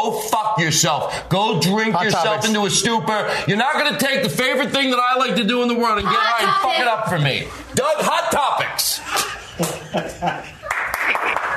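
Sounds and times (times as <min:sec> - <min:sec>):
speech: 0:00.0 - 0:10.6
laughter: 0:09.0 - 0:11.5
audience applause: 0:10.5 - 0:11.5.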